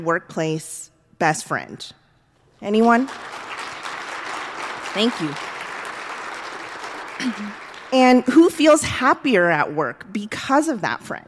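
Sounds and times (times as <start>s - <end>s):
speech: 0.0s - 2.0s, 2.6s - 3.5s, 5.0s - 5.5s, 7.2s - 11.2s
audience applause: 3.0s - 8.4s.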